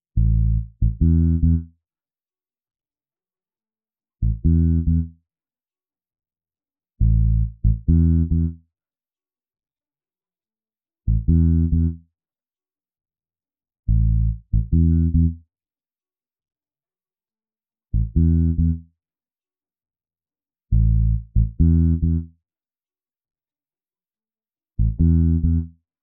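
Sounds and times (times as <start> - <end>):
home base music: 0.2 - 1.8, 4.2 - 5.2, 7.0 - 8.7, 11.0 - 12.1, 13.9 - 15.5, 17.9 - 19.0, 20.7 - 22.4, 24.8 - 25.9.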